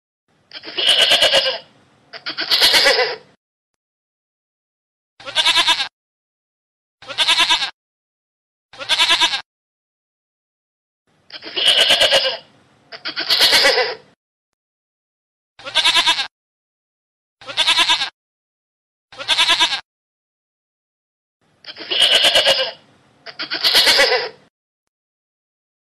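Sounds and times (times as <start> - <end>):
goat bleating: 0.5 - 3.2, 5.2 - 5.9, 7.0 - 7.8, 8.7 - 9.5, 11.3 - 14.0, 15.6 - 16.3, 17.4 - 18.2, 19.1 - 19.8, 21.6 - 24.4.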